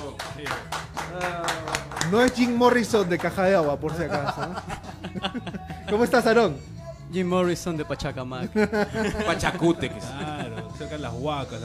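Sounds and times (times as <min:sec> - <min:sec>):
applause: 0:00.0 - 0:04.4
speech: 0:00.4 - 0:11.6
laughter: 0:03.8 - 0:06.2, 0:08.4 - 0:11.2.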